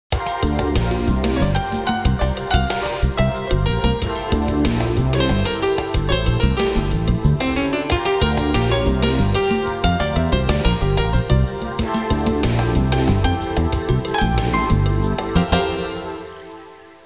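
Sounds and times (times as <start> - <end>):
urban music: 0.1 - 16.6.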